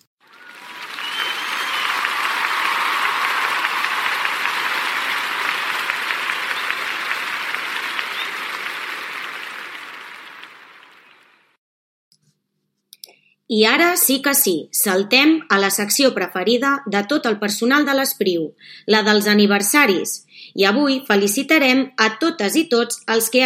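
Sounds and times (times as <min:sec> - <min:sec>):
crowd applause: 0:00.2 - 0:11.6
speech: 0:13.5 - 0:23.4.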